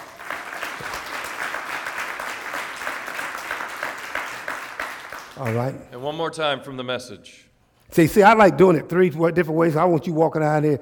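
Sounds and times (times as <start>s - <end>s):
audience clapping: 0.0s - 5.9s
speech: 5.4s - 10.8s.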